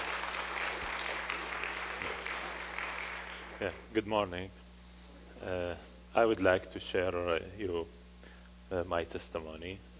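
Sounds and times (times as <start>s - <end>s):
crowd clapping: 0.0s - 3.8s
speech: 3.6s - 4.6s, 5.4s - 8.0s, 8.7s - 9.9s.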